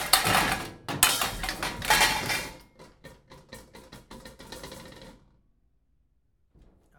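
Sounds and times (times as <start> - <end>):
trash can banging: 0.0 - 2.6
pots and pans banging: 0.0 - 5.3.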